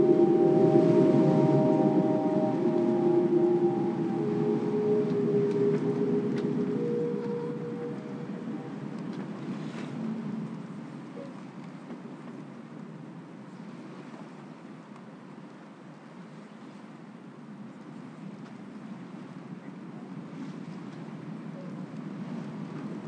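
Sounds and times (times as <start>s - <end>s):
sirens: 0.0s - 10.2s.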